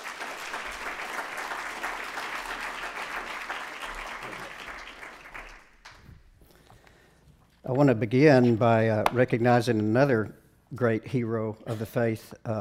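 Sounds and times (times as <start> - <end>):
applause welcoming a speaker to the platform: 0.0 - 6.2
speech: 7.7 - 12.5.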